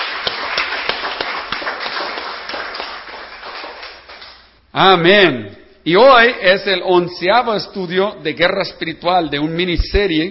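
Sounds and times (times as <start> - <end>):
audience applause: 0.0 - 4.4
speech: 4.8 - 10.2.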